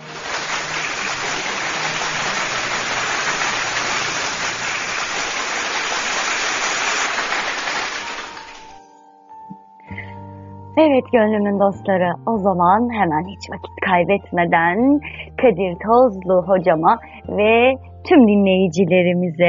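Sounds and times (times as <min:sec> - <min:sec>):
applause: 0:00.0 - 0:08.8
speech: 0:10.8 - 0:19.4.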